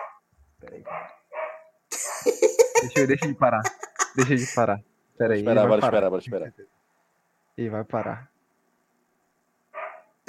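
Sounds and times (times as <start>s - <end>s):
excited dog yapping: 0.0s - 0.2s, 0.8s - 2.2s, 8.0s - 8.2s, 9.7s - 10.2s
speech: 0.6s - 1.2s, 1.9s - 6.8s, 7.6s - 8.3s
laughter: 2.0s - 4.6s.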